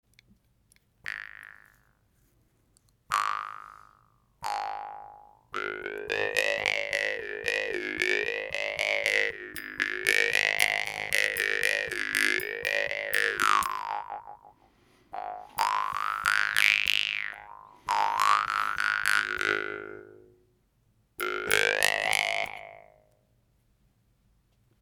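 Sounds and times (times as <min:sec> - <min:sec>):
brass genggong jaw harps: 0:03.1 - 0:20.4, 0:21.2 - 0:22.9.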